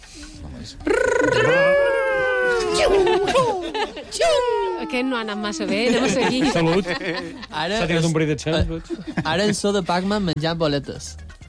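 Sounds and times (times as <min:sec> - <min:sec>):
speech: 0:00.2 - 0:01.6, 0:03.7 - 0:11.2
voice imitating Sonic running fast: 0:00.8 - 0:03.6
laughter: 0:00.9 - 0:09.8.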